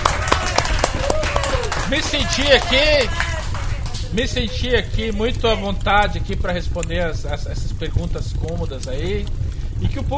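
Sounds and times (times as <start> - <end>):
audience clapping: 0.0 - 5.9
speech: 1.9 - 3.2, 4.1 - 10.1.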